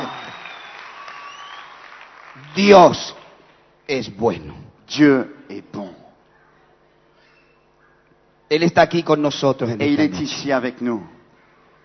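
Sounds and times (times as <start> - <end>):
congregation applauding during a church service: 0.0 - 3.7
speech: 2.5 - 3.2, 3.9 - 5.9, 8.5 - 11.2.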